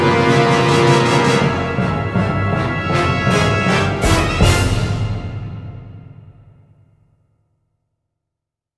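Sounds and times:
battle music: 0.3s - 6.7s.

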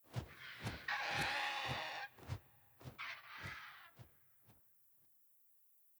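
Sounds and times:
vulture flying overhead: 0.1s - 4.0s.

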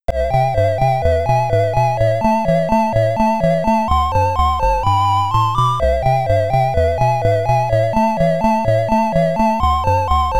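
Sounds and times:
SID stereo chiptune music: 0.1s - 10.3s.

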